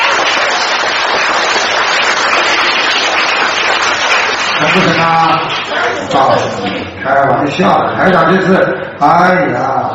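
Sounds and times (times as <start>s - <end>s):
audience applause: 0.0s - 6.5s
speech: 4.7s - 9.9s.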